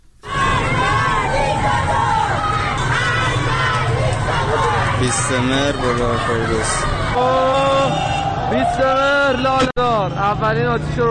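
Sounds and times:
protest crowd chanting in street: 0:00.2 - 0:08.7
speech: 0:05.0 - 0:11.0.

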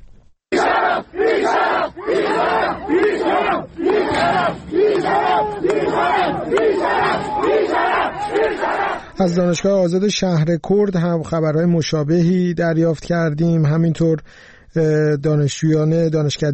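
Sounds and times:
crowd shouting and chanting at a student protest: 0:00.5 - 0:09.1
speech: 0:01.0 - 0:16.5.

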